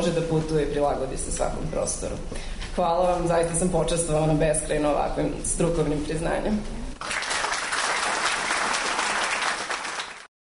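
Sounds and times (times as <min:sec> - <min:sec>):
speech: 0:00.0 - 0:07.2
applause after an award acceptance speech at an exhibition award ceremony: 0:07.0 - 0:10.3.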